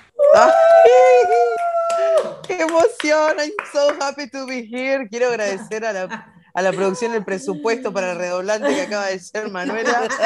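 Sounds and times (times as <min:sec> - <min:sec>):
person screaming: 0:00.2 - 0:02.3
speech: 0:00.4 - 0:01.0, 0:02.5 - 0:10.2
laughter: 0:05.4 - 0:10.2.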